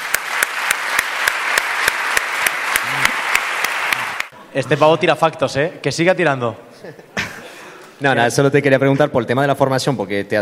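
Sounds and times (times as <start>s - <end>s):
applause: 0.0s - 4.4s
speech: 4.5s - 7.1s, 8.0s - 10.4s.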